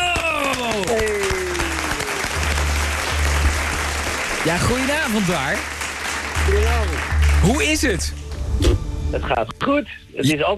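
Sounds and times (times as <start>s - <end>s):
applause: 0.0s - 8.2s
speech: 4.4s - 5.8s, 6.5s - 10.5s.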